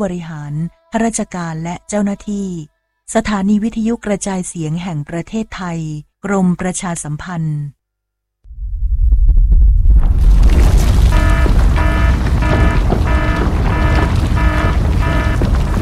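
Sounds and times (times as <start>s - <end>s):
speech: 0.0s - 7.8s
deep loud earthquake rumble: 8.5s - 15.8s.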